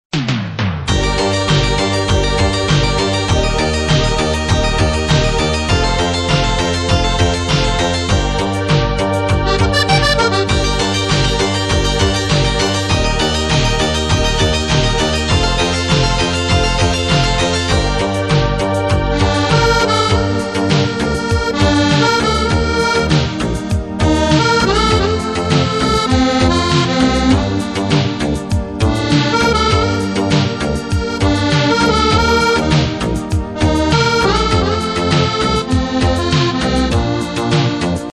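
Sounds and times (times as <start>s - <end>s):
beautiful accordion melody: 0.9s - 38.1s.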